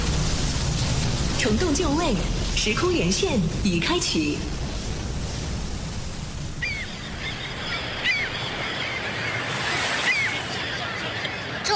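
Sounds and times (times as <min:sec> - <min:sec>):
ocean waves at a naval harbor: 0:00.0 - 0:11.7
speech: 0:01.4 - 0:04.6
short high bird calls: 0:06.5 - 0:11.6.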